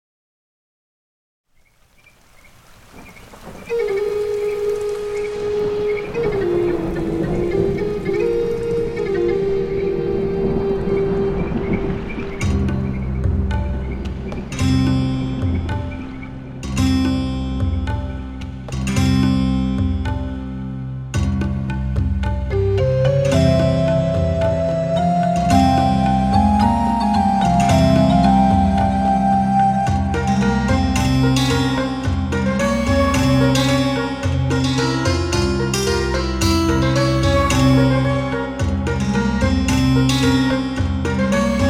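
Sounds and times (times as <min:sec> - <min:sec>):
Camel Audio Alchemy world music synth: 0:03.3 - 0:41.6.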